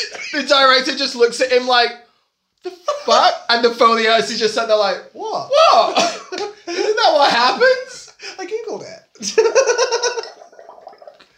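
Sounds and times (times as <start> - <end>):
speech: 0.3 - 2.0, 2.6 - 6.1, 7.0 - 7.8, 8.4 - 10.3
person blowing bubbles with mouth, gargling noise: 10.2 - 11.3.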